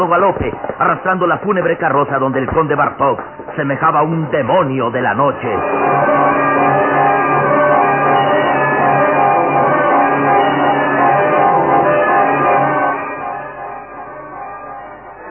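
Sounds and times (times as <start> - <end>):
speech: 0.0 - 6.2
church bell tolling: 5.2 - 15.2.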